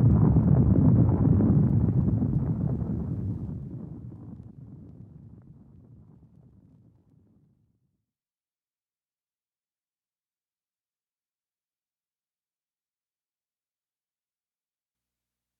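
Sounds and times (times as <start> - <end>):
earthquake rumble: 0.0 - 7.4.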